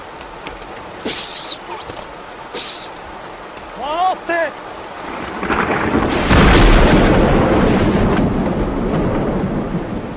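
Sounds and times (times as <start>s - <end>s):
steady rain: 0.0s - 10.1s
lightning strike thunderclap: 5.0s - 10.1s.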